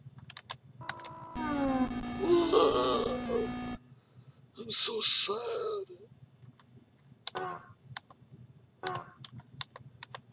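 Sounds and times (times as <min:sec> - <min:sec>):
synthesized male voice mimicking a man crashing into the ground: 0:01.6 - 0:03.8, 0:04.6 - 0:06.0
speech: 0:04.7 - 0:06.2.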